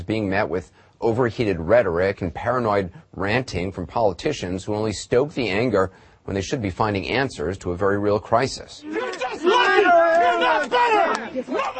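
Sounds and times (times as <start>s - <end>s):
speech: 0.0s - 9.5s, 10.4s - 11.7s
protest crowd shouting: 8.8s - 11.7s.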